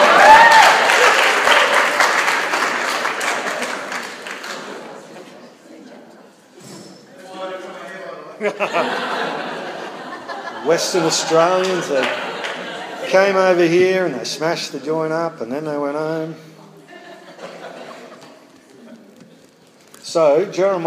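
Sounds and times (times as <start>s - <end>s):
applause: 0.0s - 4.9s, 11.6s - 12.8s
laughter: 8.4s - 13.9s, 16.6s - 19.5s
speech: 8.5s - 9.3s, 10.6s - 12.3s, 13.1s - 16.5s, 20.1s - 20.8s.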